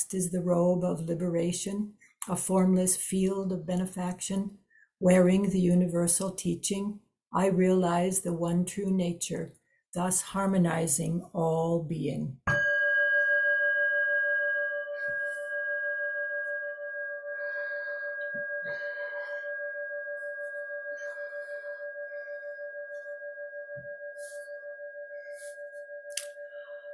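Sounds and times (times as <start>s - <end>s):
speech: 0.0s - 12.6s
meditation bell ringing: 12.5s - 26.9s.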